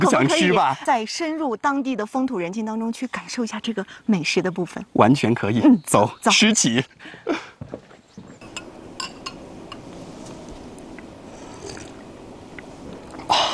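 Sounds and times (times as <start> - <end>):
speech: 0.0 - 7.9
bowl scraped before eating in a Salar banquet ritual: 8.3 - 13.2
tableware clinking: 8.4 - 9.8.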